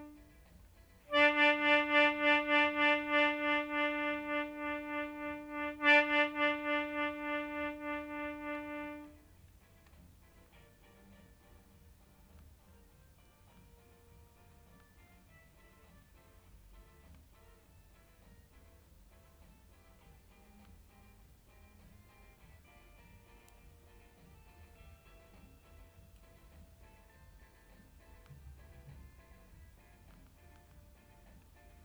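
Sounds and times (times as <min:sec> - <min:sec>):
melodica: 0:01.1 - 0:09.2.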